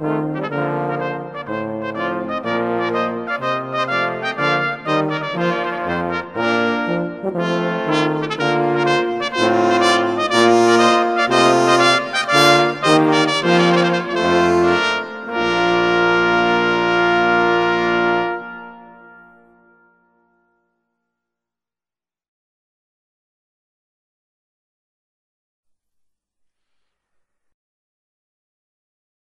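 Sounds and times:
trumpet melody: 0.0 - 20.6.

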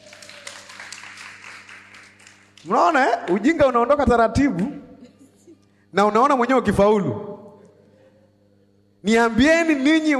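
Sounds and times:
audience clapping during a Bible lesson: 0.0 - 3.8
low steady hum: 0.0 - 10.1
speech: 2.6 - 4.8, 5.9 - 7.3, 9.0 - 10.1.

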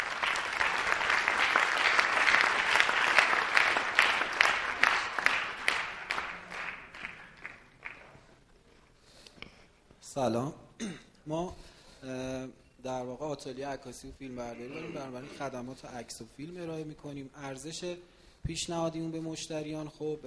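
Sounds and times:
audience applause: 0.0 - 8.2
speech: 10.2 - 20.2.

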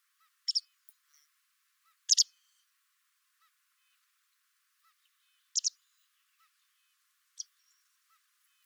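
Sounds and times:
white wagtail calls: 2.1 - 2.3, 5.6 - 5.8.

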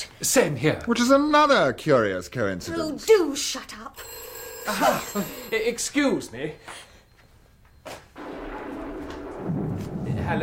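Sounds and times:
speech: 0.0 - 6.9, 10.3 - 10.4
thunder: 8.2 - 10.4.

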